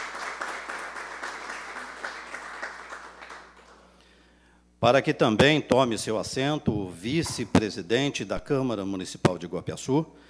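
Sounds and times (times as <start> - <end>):
audience applause: 0.0 - 3.8
speech: 4.8 - 10.2.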